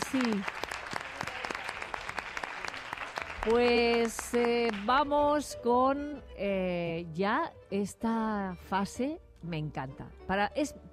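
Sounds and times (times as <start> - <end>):
audience applause: 0.0 - 4.8
speech: 0.1 - 0.6, 3.4 - 10.9.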